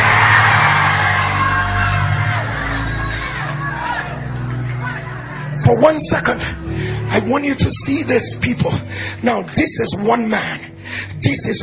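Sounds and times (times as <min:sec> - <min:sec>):
church congregation shouting together: 0:00.0 - 0:05.6
speech: 0:05.8 - 0:06.6, 0:07.2 - 0:11.6.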